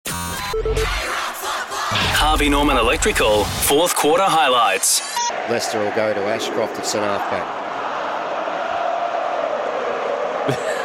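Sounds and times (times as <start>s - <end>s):
speech: 0.5s - 1.2s, 2.2s - 7.7s, 10.4s - 10.6s
stadium crowd singing: 0.8s - 2.3s, 4.8s - 10.8s.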